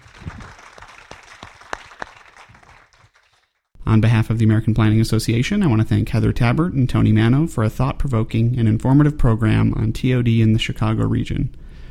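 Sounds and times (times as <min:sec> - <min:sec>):
audience applause: 0:00.0 - 0:03.6
speech: 0:03.9 - 0:11.6.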